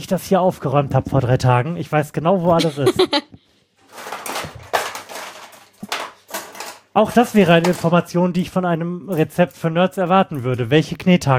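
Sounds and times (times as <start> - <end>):
speech: 0.0 - 3.4, 7.0 - 11.3
laughter: 2.6 - 3.3
utensils or drawers clattering as an electric hand mixer is fetched: 3.8 - 8.1.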